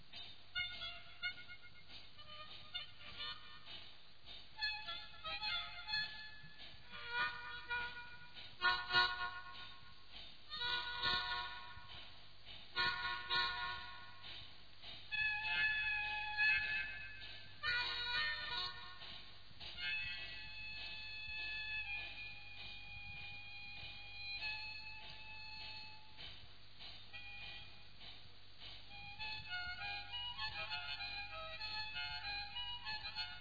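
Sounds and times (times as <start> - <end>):
harmonica solo: 0.1 - 26.3, 27.1 - 33.3.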